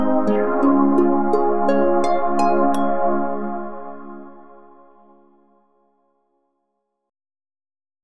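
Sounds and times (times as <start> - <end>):
sad MIDI music: 0.0 - 5.5.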